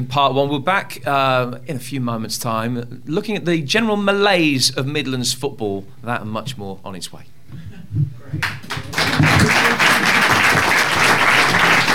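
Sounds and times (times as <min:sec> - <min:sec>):
speech: 0:00.0 - 0:08.6
live audience clapping at a football show recording in Birmingham: 0:08.4 - 0:11.9.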